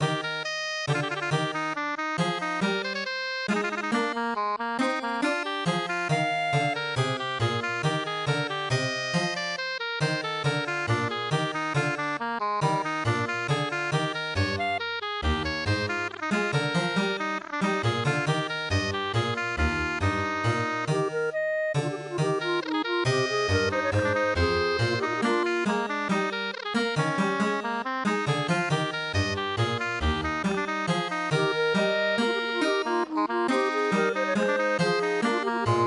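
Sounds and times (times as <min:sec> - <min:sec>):
MIDI music: 0:00.9 - 0:35.8.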